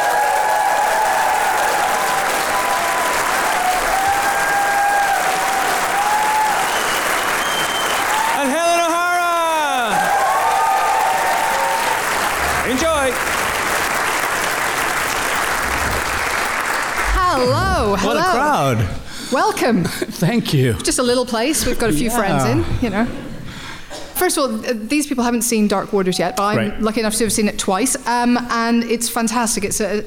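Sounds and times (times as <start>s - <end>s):
audience applause and cheering: 0.0s - 18.7s
speech: 19.4s - 23.2s, 24.2s - 30.0s.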